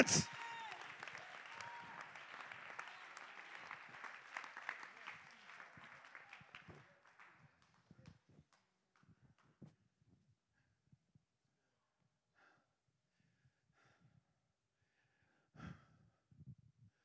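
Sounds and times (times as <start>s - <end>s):
speech: 0.0s - 0.4s
audience clapping: 0.0s - 9.0s.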